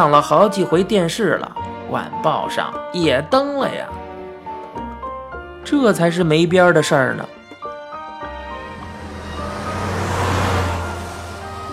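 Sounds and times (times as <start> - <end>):
speech: 0.0 - 4.0, 5.6 - 7.4
car driving: 7.4 - 11.7.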